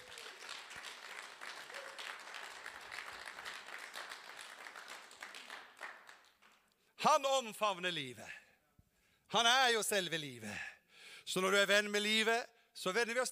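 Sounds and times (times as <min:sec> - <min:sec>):
audience applause: 0:00.0 - 0:06.6
speech: 0:07.0 - 0:08.4, 0:09.3 - 0:13.3.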